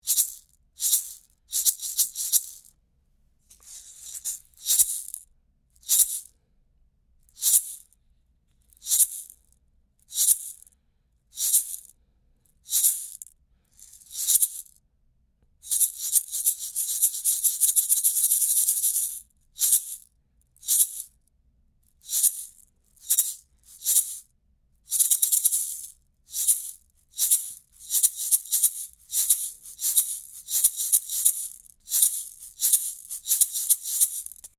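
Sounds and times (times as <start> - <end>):
maracas: 0.0 - 2.7, 3.5 - 5.2, 5.8 - 6.3, 8.8 - 9.4, 10.1 - 10.6, 11.4 - 11.9, 12.7 - 13.2, 13.8 - 14.7, 15.7 - 21.1, 22.0 - 24.2, 24.9 - 34.5.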